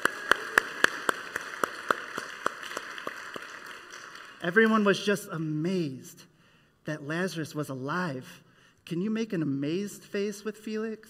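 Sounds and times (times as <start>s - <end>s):
audience applause: 0.0s - 4.4s
speech: 4.4s - 6.3s, 6.9s - 11.0s.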